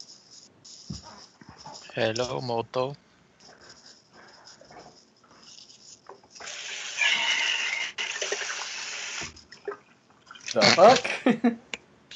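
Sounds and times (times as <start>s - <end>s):
speech: 2.0s - 3.0s, 10.6s - 11.7s
water running and splashing while a beer can is rinsed out: 6.4s - 10.6s.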